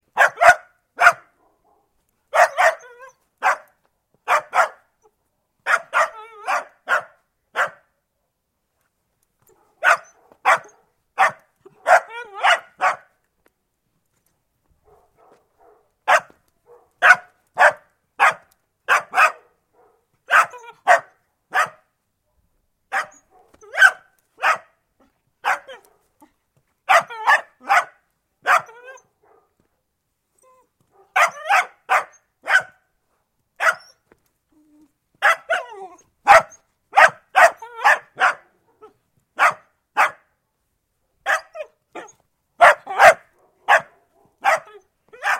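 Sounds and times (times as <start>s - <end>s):
dachshund barking: 0.1s - 4.9s, 5.6s - 7.9s, 9.5s - 13.1s, 14.8s - 21.9s, 22.9s - 24.8s, 25.4s - 26.1s, 26.9s - 29.6s, 30.9s - 32.9s, 33.6s - 34.0s, 35.2s - 40.3s, 41.2s - 45.3s.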